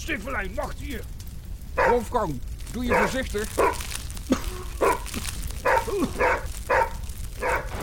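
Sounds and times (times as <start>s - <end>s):
speech: 0.0s - 1.2s, 1.8s - 5.2s, 5.8s - 6.5s
dog barking: 1.8s - 2.1s, 2.9s - 3.9s, 4.8s - 7.7s.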